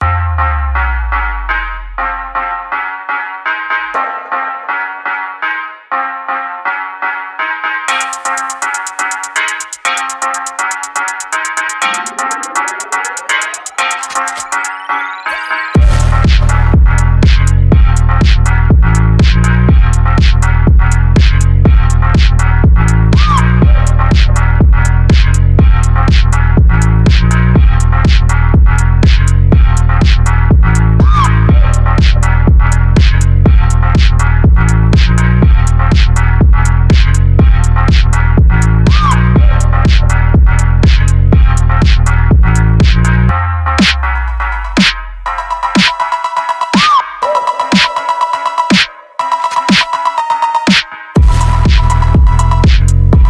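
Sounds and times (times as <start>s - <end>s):
energetic phonk music: 0.0s - 53.2s.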